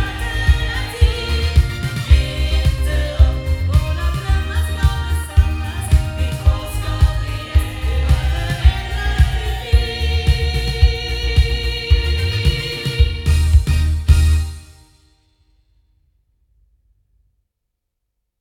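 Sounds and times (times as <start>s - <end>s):
sound from loudspeakers: 0.0s - 14.7s.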